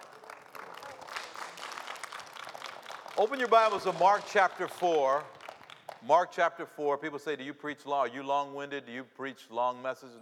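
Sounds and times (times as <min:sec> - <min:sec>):
audience hand clapping: 0:00.0 - 0:06.0
speech: 0:03.2 - 0:05.4, 0:06.0 - 0:10.2.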